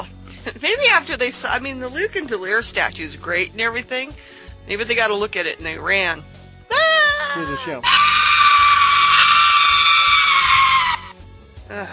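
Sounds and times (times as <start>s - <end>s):
speech: 0.4s - 8.1s, 11.7s - 11.9s
boy screaming sound effect: 6.7s - 11.2s.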